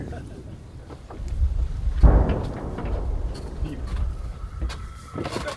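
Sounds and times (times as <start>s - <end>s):
heavy artillery gun firing a shell: 1.6s - 5.2s.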